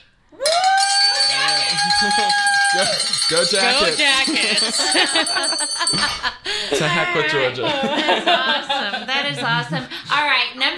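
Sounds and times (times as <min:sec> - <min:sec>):
hand bells ringing: 0:00.4 - 0:06.3
speech: 0:02.0 - 0:10.7
laughter: 0:03.5 - 0:10.0.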